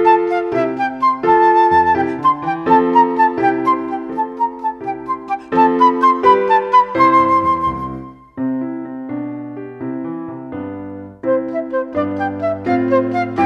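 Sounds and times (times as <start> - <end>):
flute: 0.0 - 8.4, 11.2 - 13.4
instrumental accompaniment: 0.0 - 13.4.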